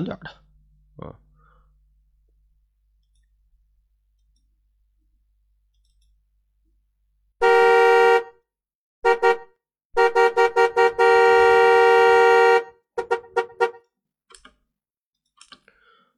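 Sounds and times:
speech: 0.0 - 0.4, 1.0 - 1.2
car horn honking: 7.4 - 8.4, 9.0 - 13.9.

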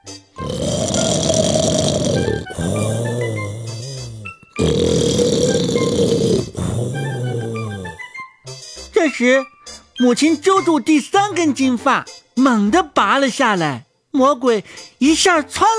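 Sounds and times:
loud deep snoring: 0.4 - 8.2
speech: 9.2 - 15.7.

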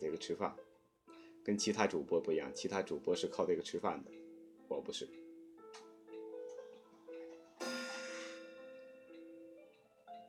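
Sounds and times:
speech: 0.0 - 0.7, 1.4 - 5.8
clock chiming the half hour: 7.6 - 9.9.

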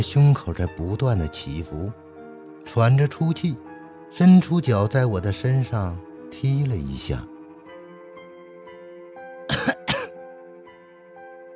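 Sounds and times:
speech: 0.0 - 2.0, 2.7 - 7.3
coughing: 9.5 - 10.2.

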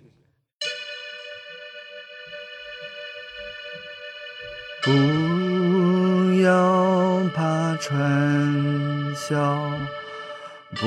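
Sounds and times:
synth pad chord on phone keyboard app: 0.6 - 10.8
speech: 4.8 - 5.3, 7.8 - 10.0
person singing: 4.8 - 10.8.

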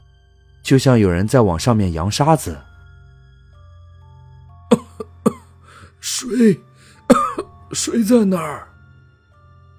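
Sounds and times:
speech: 0.7 - 2.7, 6.1 - 8.7
elderly woman coughing violently: 4.7 - 5.5, 6.2 - 8.0.

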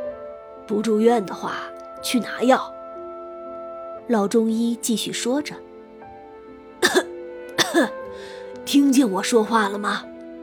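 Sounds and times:
speech: 0.7 - 2.8, 4.1 - 5.7, 7.8 - 10.1
old doctor giving dry coughs: 6.8 - 8.0.

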